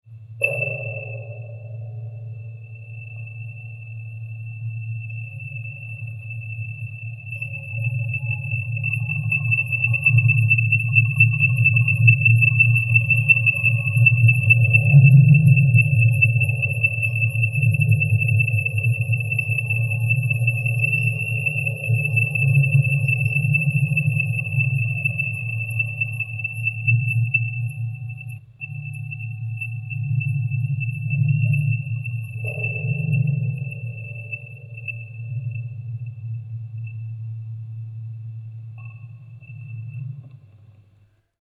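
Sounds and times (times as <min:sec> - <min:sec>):
percussion: 0:00.4 - 0:37.1.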